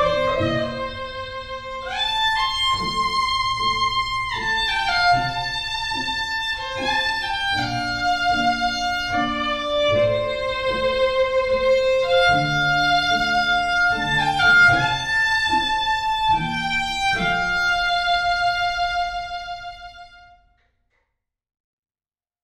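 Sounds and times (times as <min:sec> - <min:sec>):
violin solo in a jazz band: 0:00.0 - 0:20.4.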